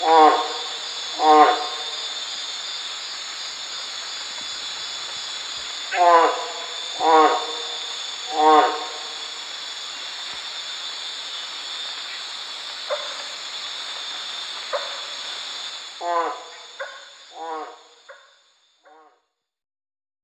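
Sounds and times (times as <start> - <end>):
Amazon milk frog rasping calls: 0.0 - 2.2, 5.9 - 9.4, 15.9 - 19.2
insect-like hiss: 0.0 - 19.1.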